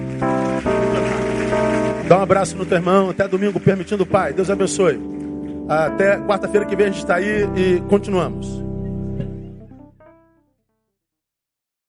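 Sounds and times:
audience applauding: 0.0s - 7.1s
speech: 2.1s - 8.6s.

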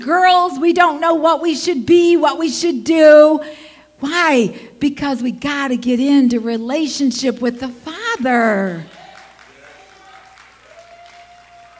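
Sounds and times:
speech: 0.0s - 9.0s
audience applause and cheers: 8.8s - 11.7s.

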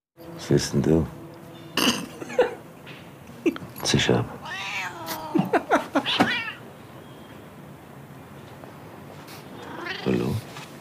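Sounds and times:
speech: 0.4s - 1.2s, 3.4s - 4.4s
laughter: 1.9s - 2.7s, 5.0s - 6.2s
cat meowing: 4.4s - 6.7s, 9.5s - 10.4s.

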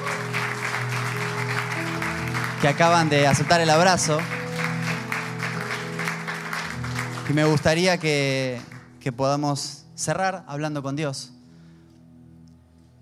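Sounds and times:
audience applause: 0.0s - 8.8s
speech: 2.6s - 4.4s, 7.3s - 11.4s.

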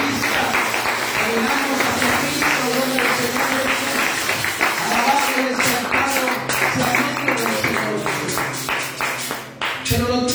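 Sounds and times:
audience applause: 0.0s - 9.9s.

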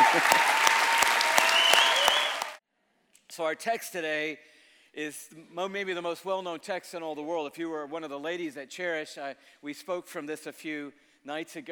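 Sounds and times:
crowd applauding: 0.0s - 2.6s
speech: 0.2s - 0.5s, 3.4s - 11.7s.

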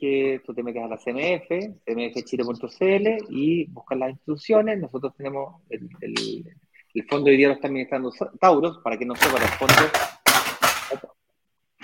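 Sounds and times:
speech: 0.0s - 10.2s
calculator falling and hitting the floor: 9.2s - 11.0s.

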